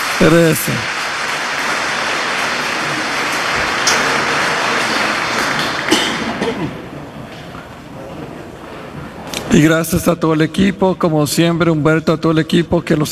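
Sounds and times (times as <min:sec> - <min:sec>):
audience applauding: 0:00.0 - 0:06.6
speech: 0:00.2 - 0:01.0, 0:09.5 - 0:13.1.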